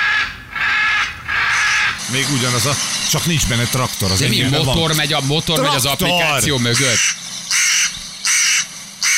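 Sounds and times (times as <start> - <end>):
hooded crow cawing: 0.0 - 2.0, 5.7 - 9.1
speech: 2.1 - 7.3.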